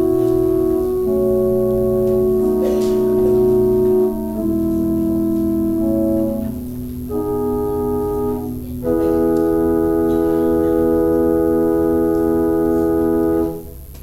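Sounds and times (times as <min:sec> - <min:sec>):
organ intro music: 0:00.0 - 0:14.0.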